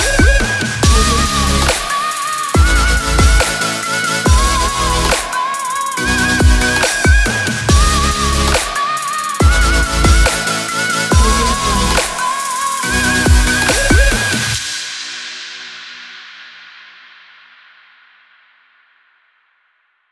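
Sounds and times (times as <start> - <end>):
future bass music: 0.0 - 14.7.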